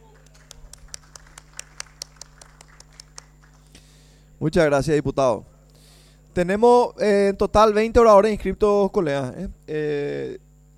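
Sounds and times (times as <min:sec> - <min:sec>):
applause in a legislative chamber: 0:00.0 - 0:03.9
low electrical hum: 0:00.0 - 0:10.7
speech: 0:04.4 - 0:05.5, 0:06.4 - 0:10.4.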